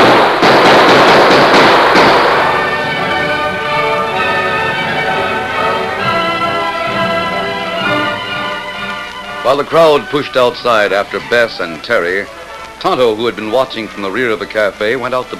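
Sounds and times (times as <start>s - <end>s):
volley of gunshots fired at fleeing riders: 0.0s - 3.1s
sustained tonal notes: 2.3s - 15.3s
speech: 9.5s - 15.3s.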